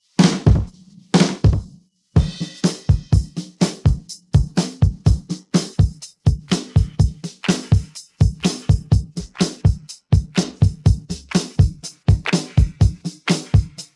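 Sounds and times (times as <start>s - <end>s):
drum pattern: 0.2s - 13.9s.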